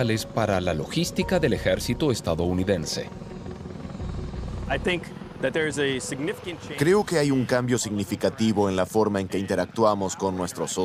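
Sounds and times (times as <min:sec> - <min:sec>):
speech: 0:00.0 - 0:03.3, 0:04.7 - 0:10.8
V-22 Osprey tiltrotor aircraft rotors and engines: 0:00.0 - 0:10.8.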